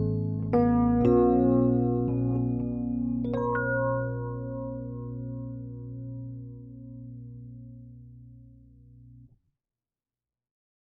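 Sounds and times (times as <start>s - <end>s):
EP bell tone on a Dexibell Vivo S2 keyboard: 0.0s - 7.6s.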